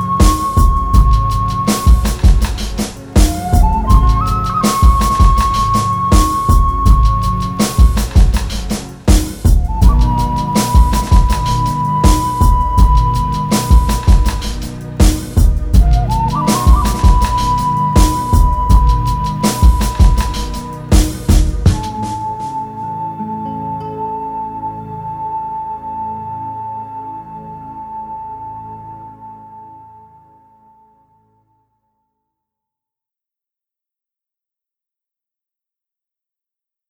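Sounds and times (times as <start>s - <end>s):
drums: 0.0s - 22.7s.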